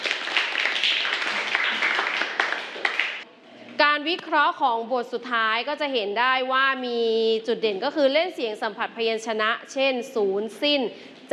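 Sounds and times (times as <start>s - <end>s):
group clapping applause: 0.0s - 3.3s
speech: 4.0s - 11.3s.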